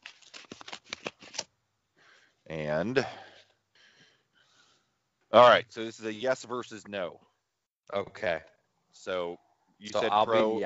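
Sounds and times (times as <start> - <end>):
paper envelope being torn open: 0.0 - 1.5
speech: 2.5 - 3.2, 5.3 - 7.3, 7.9 - 10.6.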